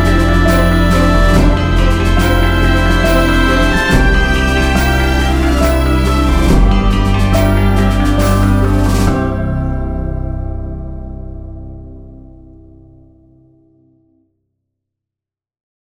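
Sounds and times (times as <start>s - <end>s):
short Christmas instrumental music: 0.0s - 11.8s.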